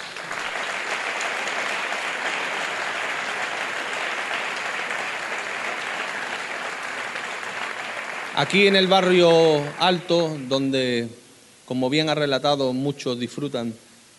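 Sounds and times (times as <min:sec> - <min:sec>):
audience applause: 0:00.0 - 0:10.9
speech: 0:08.4 - 0:13.9.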